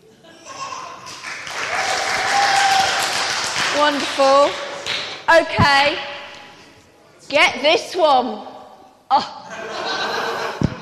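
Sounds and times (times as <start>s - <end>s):
weak applause: 1.0s - 4.9s
speech: 3.8s - 4.6s, 5.3s - 6.1s, 7.3s - 8.5s, 9.1s - 9.6s
laughter: 9.4s - 10.8s.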